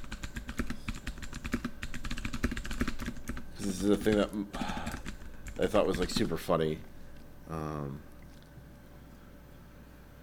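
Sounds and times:
rapid typing on a computer keyboard: 0.0s - 6.3s
speech: 3.6s - 4.8s, 5.6s - 6.9s, 7.5s - 8.1s.

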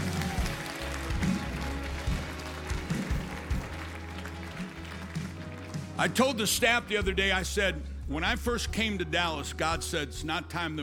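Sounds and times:
audience clapping: 0.0s - 6.4s
speech: 6.0s - 10.8s.

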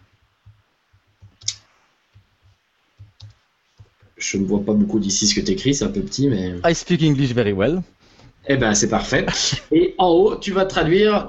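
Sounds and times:
keys clicking on a computer keyboard: 3.0s - 4.0s
speech: 4.2s - 11.2s.

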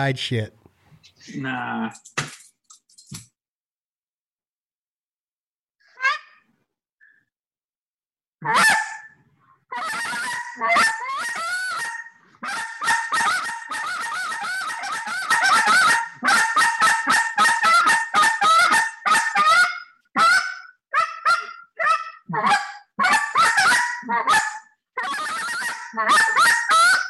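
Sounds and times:
speech: 0.0s - 0.6s, 1.2s - 2.3s, 8.4s - 8.8s, 10.6s - 11.0s
hunter's goose call blown in nasal honks and clucks: 9.8s - 27.0s.

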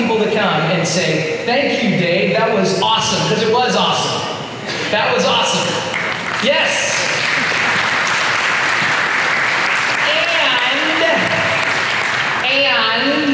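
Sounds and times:
speech: 0.4s - 4.2s, 4.9s - 7.8s, 12.5s - 13.3s
audience clapping for musicians: 5.5s - 12.6s.

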